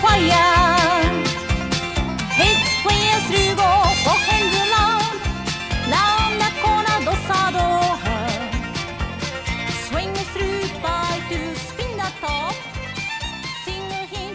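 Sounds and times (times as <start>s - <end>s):
square dance vocal: 0.0s - 1.5s, 2.3s - 8.7s, 9.4s - 12.7s.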